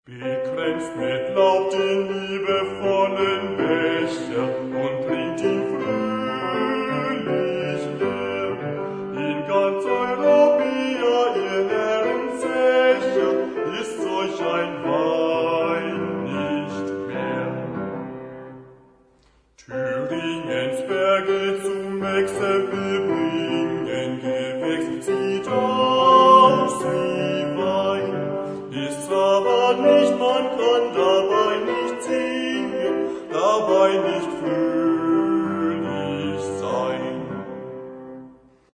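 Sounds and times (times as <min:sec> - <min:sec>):
German wine song: 0:00.1 - 0:38.2.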